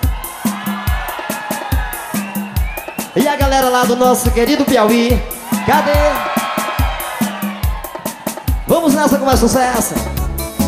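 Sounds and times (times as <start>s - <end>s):
concert crowd shouting and roaring: 0.0s - 3.2s, 5.3s - 8.7s
pounding music: 0.0s - 10.6s
speech: 3.2s - 6.3s, 8.7s - 10.2s.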